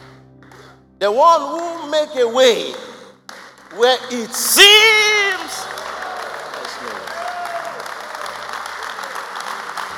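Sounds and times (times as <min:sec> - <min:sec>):
speech: 0:01.0 - 0:02.8, 0:03.7 - 0:05.6
audience applauding: 0:02.7 - 0:09.9.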